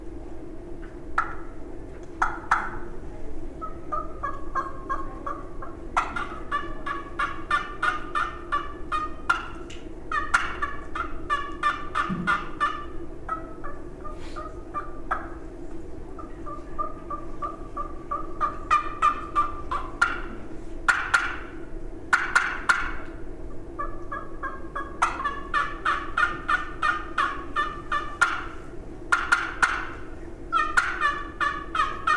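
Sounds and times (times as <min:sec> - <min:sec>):
low rumble: 0:00.0 - 0:32.1
turkey gobbles and clucks imitated on a diaphragm call: 0:00.8 - 0:03.0, 0:03.6 - 0:32.1.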